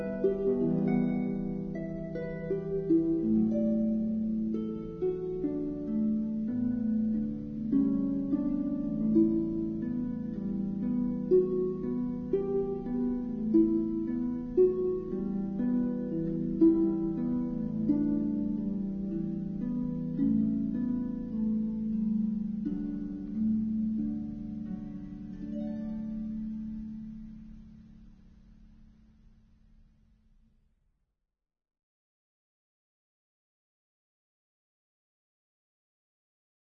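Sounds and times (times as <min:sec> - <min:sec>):
harp: 0:00.0 - 0:28.9.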